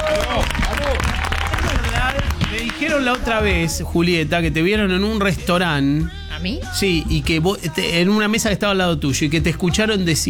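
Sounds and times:
crowd voices and brief whoops: 0:00.0 - 0:03.0
audience applause: 0:00.0 - 0:03.4
speech: 0:03.0 - 0:10.2.

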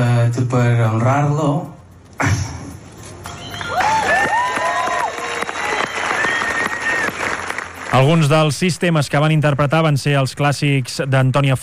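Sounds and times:
speech: 0:00.0 - 0:02.4, 0:07.9 - 0:11.6
whistle-like tones: 0:03.3 - 0:04.3, 0:05.4 - 0:07.4
audience applause and cheering at a tribute concert: 0:03.3 - 0:08.3.

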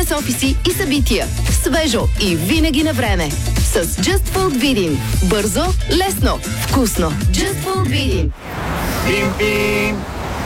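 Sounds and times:
speech: 0:00.1 - 0:10.1
car horn beeping: 0:08.9 - 0:10.1.

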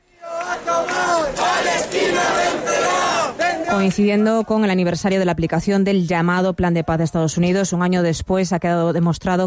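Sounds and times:
protest crowd chanting slogans: 0:00.0 - 0:05.0
speech: 0:03.7 - 0:09.4.

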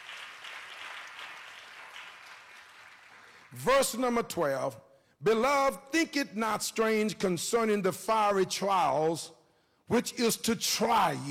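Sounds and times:
audience hand clapping: 0:00.0 - 0:04.0
speech: 0:03.5 - 0:11.2.

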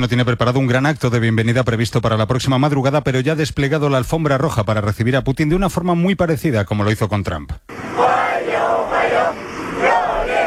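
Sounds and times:
speech: 0:00.0 - 0:09.4
children cheering a welcome: 0:07.7 - 0:10.4.

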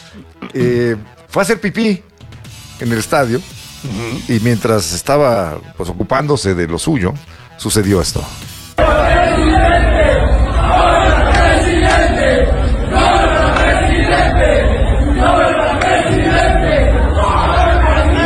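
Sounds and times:
speech: 0:00.2 - 0:02.1, 0:02.8 - 0:09.6
crowd chanting presidente: 0:08.8 - 0:18.2.

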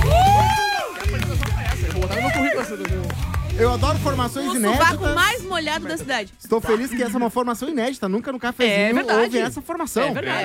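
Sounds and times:
audience applause: 0:00.0 - 0:03.7
speech: 0:03.6 - 0:10.4.

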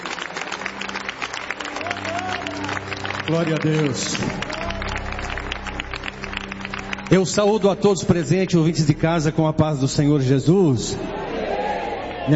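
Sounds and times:
audience applauding: 0:00.0 - 0:09.3
speech: 0:03.3 - 0:04.5, 0:07.1 - 0:11.2.

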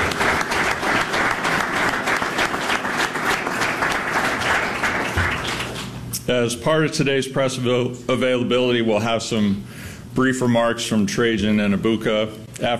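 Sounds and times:
applause at a Detroit Pistons press conference welcoming the newest player: 0:00.0 - 0:06.0
speech: 0:06.3 - 0:12.7.

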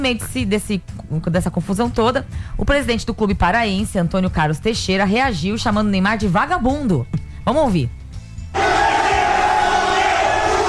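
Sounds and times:
speech: 0:00.0 - 0:08.6
crowd shouting in an uproar: 0:08.6 - 0:10.6.

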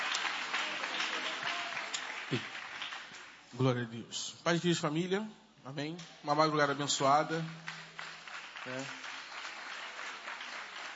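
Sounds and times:
audience applauding: 0:00.0 - 0:03.4, 0:06.9 - 0:10.9
speech: 0:02.3 - 0:02.6, 0:03.5 - 0:07.7, 0:08.6 - 0:09.0.

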